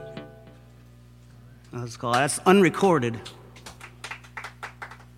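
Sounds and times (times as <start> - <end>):
speech: 1.8 - 3.4
polite light golf claps: 3.5 - 5.1.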